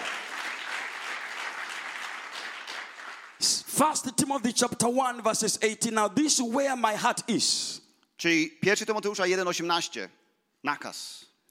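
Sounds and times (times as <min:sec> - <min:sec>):
audience clapping: 0:00.0 - 0:03.7
speech: 0:03.4 - 0:11.3.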